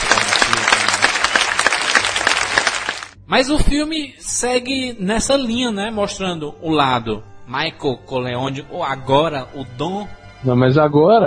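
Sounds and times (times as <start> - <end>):
applause: 0.0 - 3.2
speech: 3.3 - 11.2.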